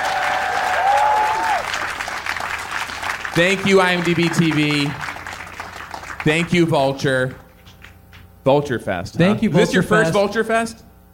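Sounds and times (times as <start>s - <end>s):
audience clapping: 0.0s - 8.2s
speech: 3.4s - 5.0s, 6.2s - 7.4s, 8.4s - 10.8s.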